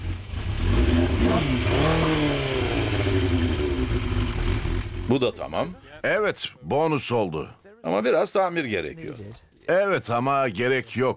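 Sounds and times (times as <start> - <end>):
motorcycle engine revving with deep throaty aftermarket exhaust: 0.0 - 5.5
speech: 5.1 - 11.1.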